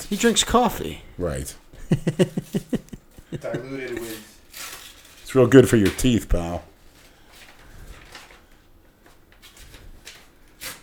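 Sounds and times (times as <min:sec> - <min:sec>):
speech: 0:00.1 - 0:04.3, 0:05.3 - 0:06.7
laughter: 0:01.8 - 0:04.3
envelope being torn open: 0:04.0 - 0:06.0, 0:09.4 - 0:10.8.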